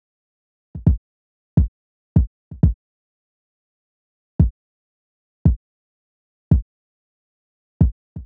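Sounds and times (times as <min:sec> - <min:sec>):
kick drum: 0:00.7 - 0:01.0, 0:01.6 - 0:02.8, 0:07.8 - 0:08.2.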